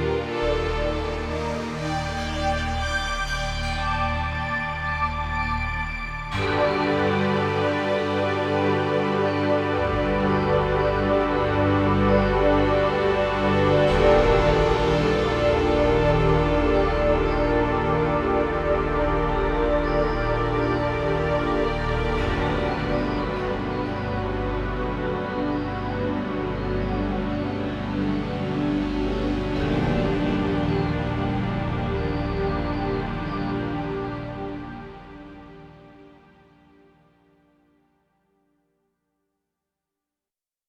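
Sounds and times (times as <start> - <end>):
Korg Radias-R synthesizer atmosphere: 0.0 - 37.2.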